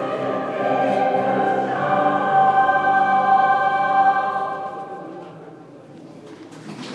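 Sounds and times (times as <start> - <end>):
Japanese choir singing: 0.0 - 5.2.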